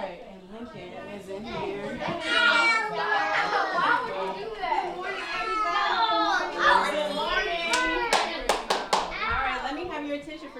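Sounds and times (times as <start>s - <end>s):
crowd of children chattering, squealing and shouting at a party: 0.0s - 10.5s
sharp handclaps: 7.7s - 9.2s.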